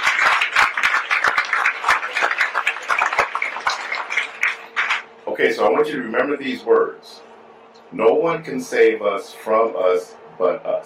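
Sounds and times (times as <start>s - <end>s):
audience applause: 0.0s - 5.1s
speech: 5.4s - 7.2s, 7.9s - 10.8s.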